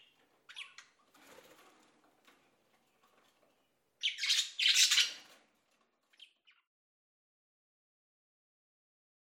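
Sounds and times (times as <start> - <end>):
birds: 0.0 - 6.7.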